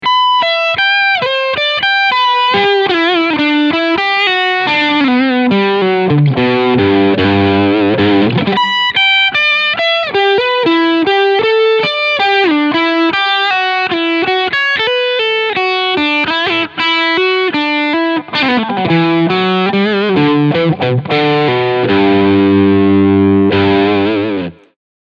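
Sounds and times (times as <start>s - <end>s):
crunchy electric guitar on bridge pickup: 0.0s - 24.8s.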